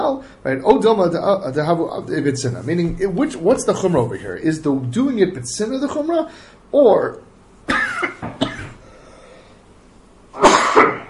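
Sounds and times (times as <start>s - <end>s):
speech: 0.2s - 8.2s
person coughing with something stuck in the back of the throat: 7.7s - 8.8s, 10.4s - 11.0s.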